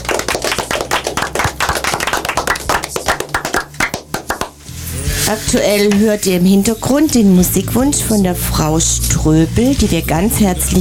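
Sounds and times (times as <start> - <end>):
applause: 0.0 - 4.6
speech: 5.3 - 10.7.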